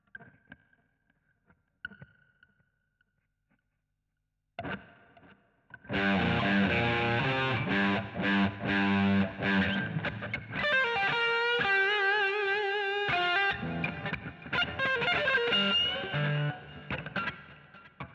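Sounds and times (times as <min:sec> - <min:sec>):
guitar solo: 0:05.9 - 0:18.1.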